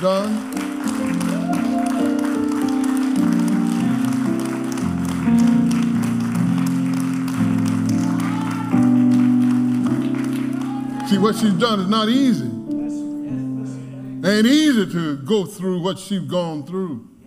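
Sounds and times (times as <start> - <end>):
speech: 0.0 - 1.2, 11.1 - 12.5, 14.3 - 17.1
audience standing and applauding: 0.0 - 12.0.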